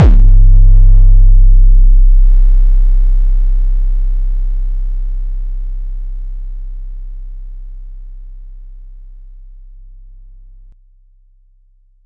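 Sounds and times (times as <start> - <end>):
booming kick drums: 0.0 - 5.0.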